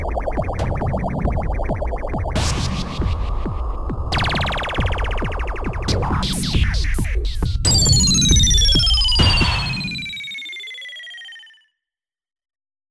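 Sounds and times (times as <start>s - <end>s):
Korg MS20 percussion: 0.0s - 11.3s
Korg MS20 synthesizer effects: 7.7s - 11.6s.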